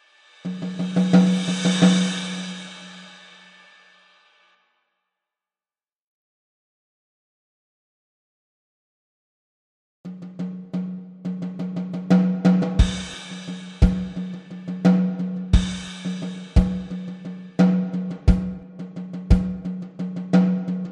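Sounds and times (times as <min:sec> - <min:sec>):
drums: 0:00.0 - 0:04.4, 0:10.1 - 0:20.8.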